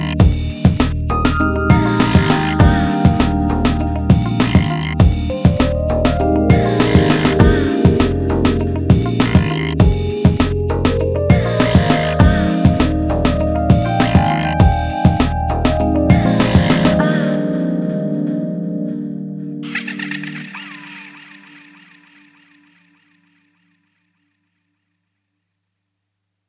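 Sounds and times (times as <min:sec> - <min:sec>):
instrumental music: 0:00.0 - 0:22.2.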